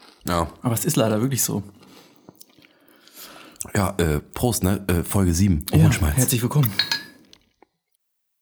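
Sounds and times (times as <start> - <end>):
chewing crunchy potato chips: 0.0 - 1.1, 1.7 - 3.7, 7.2 - 7.8
speech: 0.3 - 2.0, 3.6 - 7.0.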